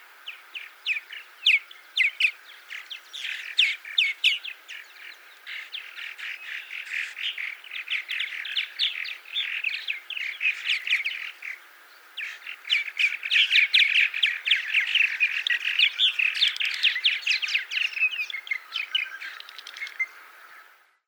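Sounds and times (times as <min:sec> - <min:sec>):
purple martin calling: 0:00.2 - 0:20.7.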